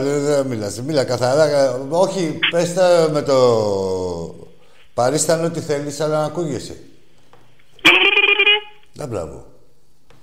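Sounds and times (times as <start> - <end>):
speech: 0.0 - 4.4, 5.0 - 6.9, 9.0 - 9.5
person imitating turkey gobble: 7.8 - 8.8.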